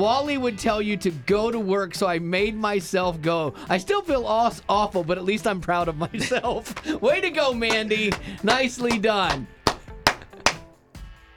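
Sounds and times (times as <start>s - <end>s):
speech: 0.0s - 9.6s
laughter: 5.9s - 9.0s, 10.1s - 10.6s
slow clap from one person: 6.6s - 10.7s.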